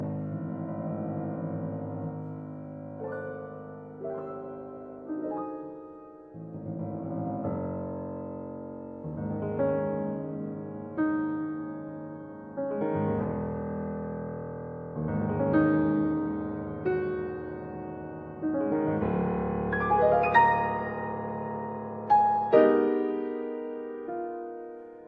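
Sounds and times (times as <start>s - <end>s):
piano sonata: 0.0s - 25.0s.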